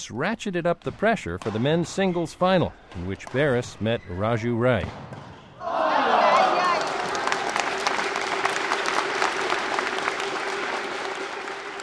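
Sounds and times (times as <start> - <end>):
speech: 0.0 - 5.9
badminton crowd applauding and cheering: 5.6 - 11.8.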